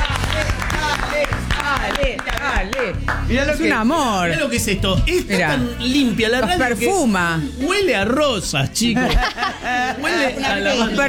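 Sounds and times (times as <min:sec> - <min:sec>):
laughter: 0:00.0 - 0:01.2, 0:08.8 - 0:11.0
applause: 0:00.0 - 0:03.3
speech: 0:02.0 - 0:11.0.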